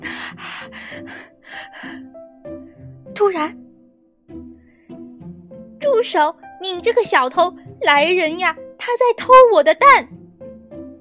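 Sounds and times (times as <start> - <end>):
exhausted panting: 0.0 - 2.0
speech: 3.2 - 3.6, 6.0 - 10.2.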